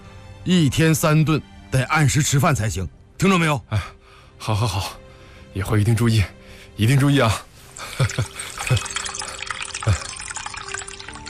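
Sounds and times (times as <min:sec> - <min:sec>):
speech: 0:00.4 - 0:08.9
tea being poured into cups: 0:07.5 - 0:11.2
splashy drips: 0:07.6 - 0:11.2.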